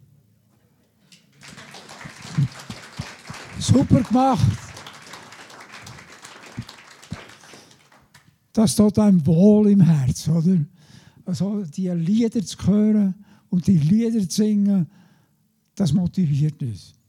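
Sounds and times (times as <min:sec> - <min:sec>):
audience applause: 0:01.3 - 0:08.3
speech: 0:03.7 - 0:04.6, 0:08.6 - 0:10.7, 0:11.3 - 0:15.0, 0:15.8 - 0:17.0.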